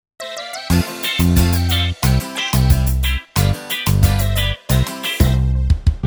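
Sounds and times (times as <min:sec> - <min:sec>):
karaoke singing: 0:00.2 - 0:05.9.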